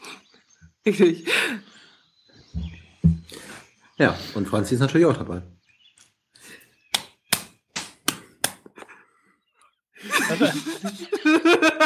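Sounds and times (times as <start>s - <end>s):
speech: 0.8s - 1.6s, 4.0s - 5.6s, 10.4s - 11.8s
person clapping hands: 6.9s - 8.9s
laughter: 10.0s - 11.8s.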